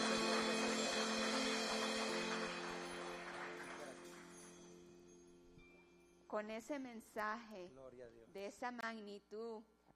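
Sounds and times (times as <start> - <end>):
audience applauding: 0.0 - 4.7
speech: 6.3 - 9.9.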